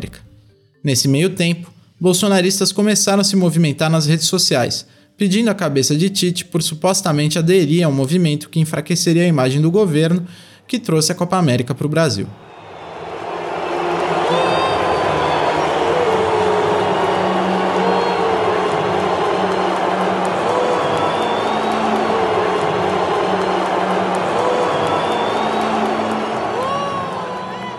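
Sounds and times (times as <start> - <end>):
speech: 0.0 - 12.5
stadium crowd at the Maracanã reacting: 12.4 - 27.7.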